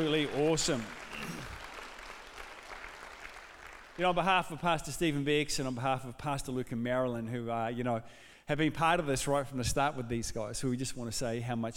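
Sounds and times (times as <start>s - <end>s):
speech: 0.0s - 1.0s, 4.0s - 11.7s
church congregation applauding to welcome two pastors: 0.0s - 4.4s.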